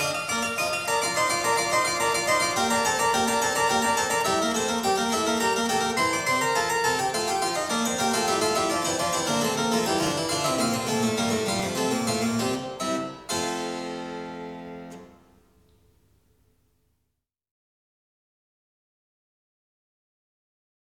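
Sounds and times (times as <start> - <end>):
keyboard invention in F major: 0.0 - 15.0.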